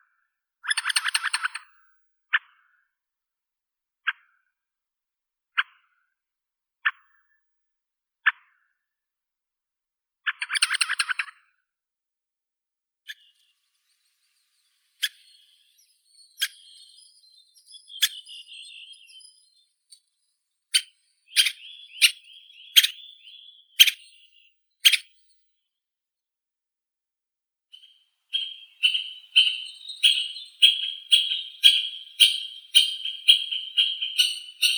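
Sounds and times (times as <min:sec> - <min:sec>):
white-backed woodpecker Dendrocopos leucotos: 0:00.7 - 0:01.6, 0:10.4 - 0:11.3, 0:15.0 - 0:20.0, 0:20.7 - 0:25.3, 0:27.8 - 0:34.7.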